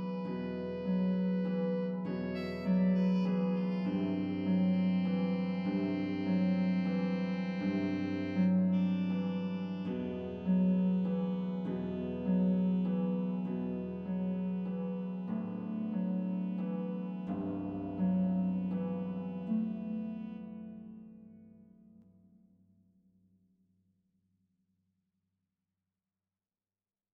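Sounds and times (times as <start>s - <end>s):
saxophone accompaniment in F: 0.0s - 20.6s.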